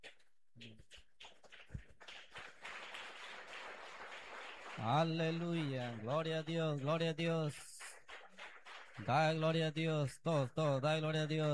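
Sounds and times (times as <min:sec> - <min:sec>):
audience applauding: 0:01.2 - 0:09.4
speech: 0:04.8 - 0:07.7, 0:09.0 - 0:11.5.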